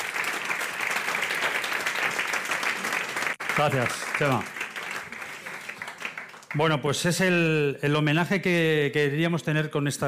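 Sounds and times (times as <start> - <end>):
audience applause: 0.0 - 7.1
speech: 3.6 - 4.6, 6.5 - 10.0.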